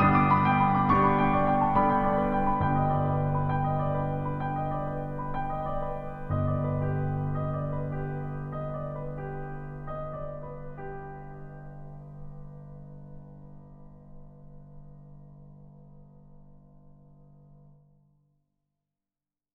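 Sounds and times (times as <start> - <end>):
piano music: 0.0 - 13.3.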